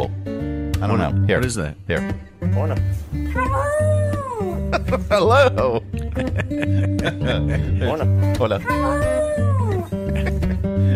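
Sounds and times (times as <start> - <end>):
speech: 0.0 - 9.5
dog vocalizing like saying hello: 3.4 - 4.7, 8.6 - 10.0
laughter: 4.6 - 8.1, 8.7 - 10.9.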